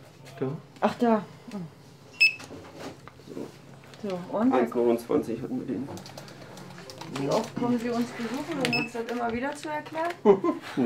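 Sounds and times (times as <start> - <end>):
speech: 0.4 - 1.8, 3.4 - 6.2, 7.1 - 10.8
supermarket checkout scanner beep: 2.2 - 2.5, 8.7 - 9.0.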